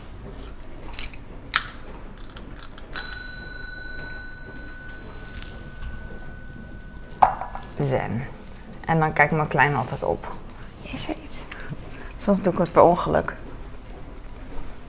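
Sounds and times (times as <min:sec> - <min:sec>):
small dinner bell ringing: 0:03.0 - 0:07.8
speech: 0:07.8 - 0:11.5, 0:12.2 - 0:13.4.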